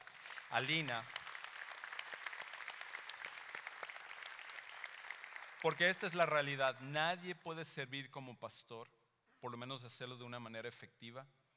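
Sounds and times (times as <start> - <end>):
audience applause: 0.0 - 6.3
speech: 0.5 - 1.2, 5.6 - 11.4.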